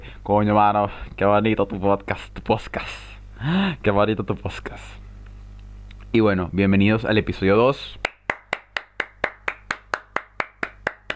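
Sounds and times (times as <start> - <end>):
speech: 0.2 - 5.0, 6.1 - 8.0
one person clapping hands alone: 8.0 - 11.1.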